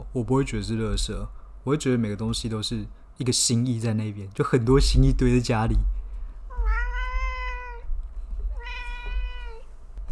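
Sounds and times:
low constant rumble: 0.0s - 10.0s
speech: 0.1s - 6.0s
cat meowing: 6.5s - 9.7s.

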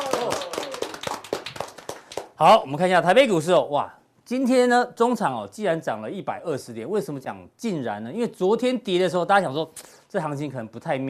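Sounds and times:
hand clapping: 0.0s - 2.4s
speech: 2.4s - 11.0s.

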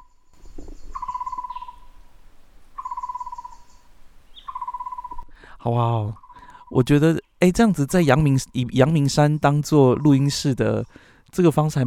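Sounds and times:
bird calling in the mountains: 0.0s - 2.0s, 2.8s - 5.2s
soft hum of insects: 0.0s - 11.1s
speech: 5.6s - 11.8s.

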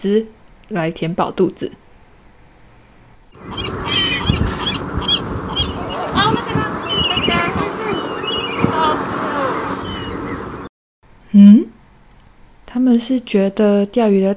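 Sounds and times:
speech: 0.0s - 1.8s, 11.3s - 11.7s, 12.8s - 14.3s
seagulls squabbling: 3.4s - 10.7s.

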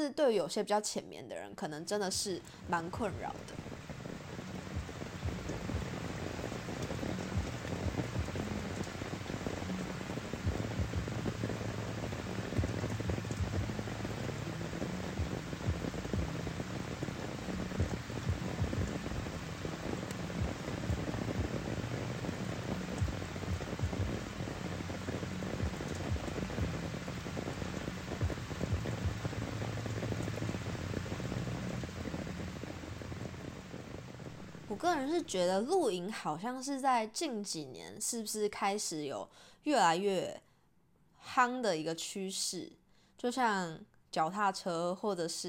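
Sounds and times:
speech: 0.0s - 3.8s, 34.8s - 40.4s, 41.2s - 45.4s
rain hitting a tent: 2.8s - 34.8s.

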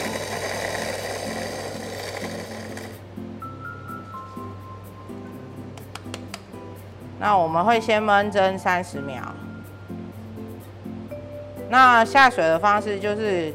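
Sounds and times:
electric coffee grinder grinding coffee beans: 0.0s - 3.1s
speech: 7.2s - 9.4s, 11.7s - 13.5s.

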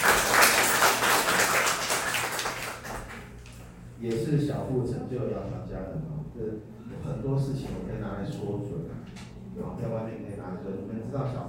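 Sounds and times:
audience applause: 0.0s - 3.3s
speech: 4.0s - 11.4s.

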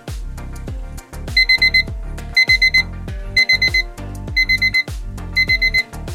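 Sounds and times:
reminder alarm with bright high electronic beeps: 1.4s - 5.9s.

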